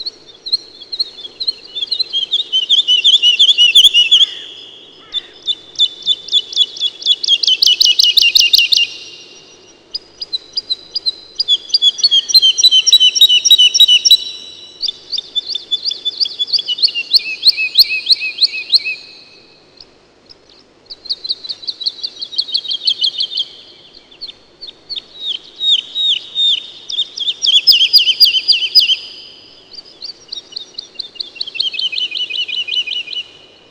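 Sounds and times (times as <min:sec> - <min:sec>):
woodlark singing: 0:00.0 - 0:33.6.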